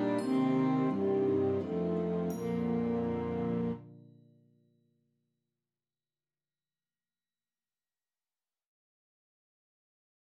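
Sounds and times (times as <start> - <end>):
saxophone melody: 0.0 - 3.8.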